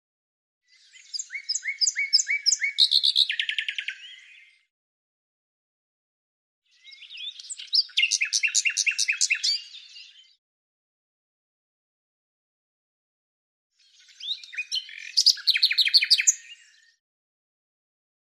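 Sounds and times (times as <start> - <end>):
bird song with scratchy notes and a run of high sharp notes: 0.6 - 4.7, 6.6 - 10.4, 13.7 - 17.0.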